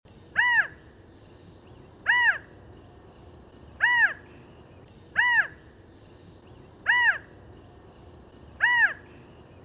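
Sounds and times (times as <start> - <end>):
bird harsh cawing: 2.0 - 2.5, 3.8 - 4.3, 5.2 - 5.6, 6.8 - 7.3, 8.6 - 9.2.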